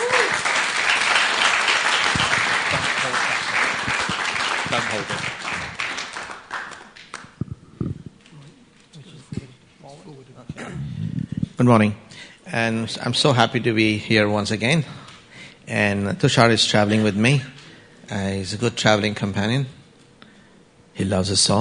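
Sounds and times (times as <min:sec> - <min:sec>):
audience applause: 0:00.0 - 0:07.4
speech: 0:05.0 - 0:05.3, 0:11.6 - 0:15.0, 0:15.7 - 0:17.5, 0:18.1 - 0:19.8, 0:21.0 - 0:21.5.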